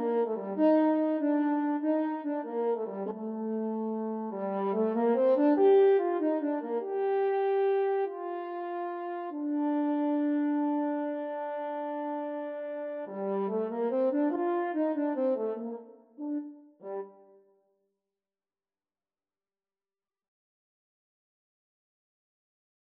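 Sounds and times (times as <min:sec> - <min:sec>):
french horn duet: 0:00.0 - 0:17.4.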